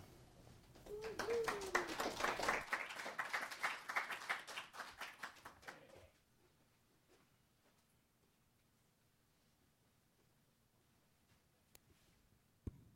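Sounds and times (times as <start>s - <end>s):
audience clapping: 0.8s - 6.2s.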